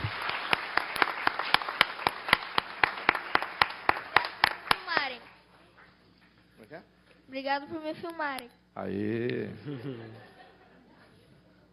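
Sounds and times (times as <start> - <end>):
audience applause: 0.0 - 5.4
speech: 7.3 - 10.3
laughter: 9.3 - 11.1.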